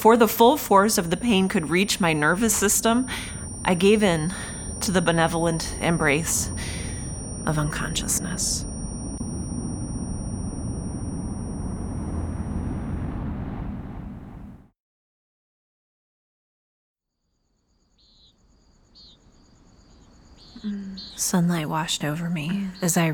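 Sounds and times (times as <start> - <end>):
speech: 0.0 - 6.8, 7.4 - 8.7, 20.6 - 23.1
crickets singing: 0.0 - 14.4, 17.5 - 23.1
birds chirping: 0.3 - 10.4, 18.0 - 23.1.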